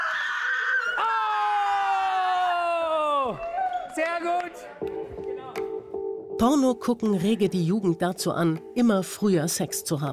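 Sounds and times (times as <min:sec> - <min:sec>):
human scream: 0:00.0 - 0:03.7
speech: 0:01.0 - 0:01.2, 0:03.3 - 0:05.0, 0:06.4 - 0:10.1.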